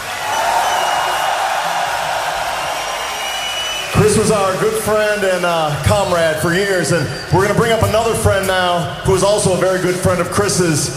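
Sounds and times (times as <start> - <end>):
dense applause: 0.0 - 5.8
crowd roaring and cheering: 0.0 - 10.9
speech: 4.0 - 10.9.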